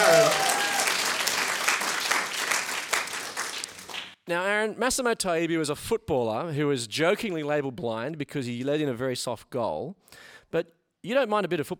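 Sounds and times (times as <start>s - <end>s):
round of applause: 0.0s - 4.2s
speech: 4.3s - 11.7s.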